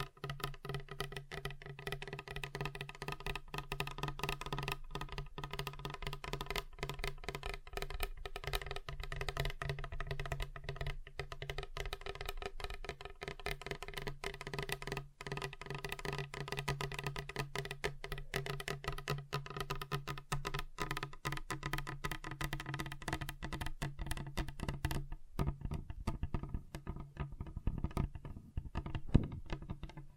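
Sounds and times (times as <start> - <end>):
fingers tapping rapidly on a table: 0.0 - 30.1.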